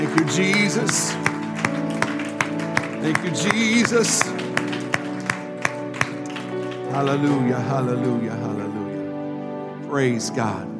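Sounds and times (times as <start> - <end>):
crowd clapping in unison: 0.0 - 8.6
sustained musical backdrop with held tones: 0.0 - 10.7
speech: 0.3 - 2.0, 3.0 - 4.7, 7.0 - 8.4, 9.9 - 10.7.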